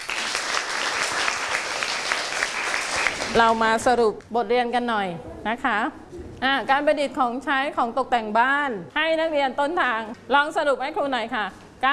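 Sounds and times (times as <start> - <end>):
students clapping hands: 0.0 - 3.4
speech: 3.3 - 11.9.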